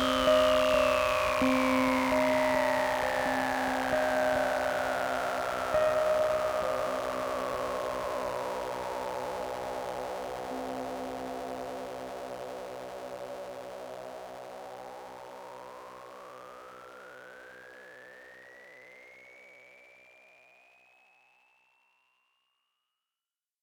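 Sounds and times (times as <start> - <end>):
Yamaha CP70 electric grand piano: 0.0 - 14.3.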